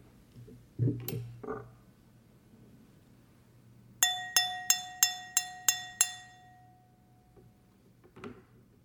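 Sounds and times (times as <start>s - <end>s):
fork tapping a glass: 4.0s - 7.0s.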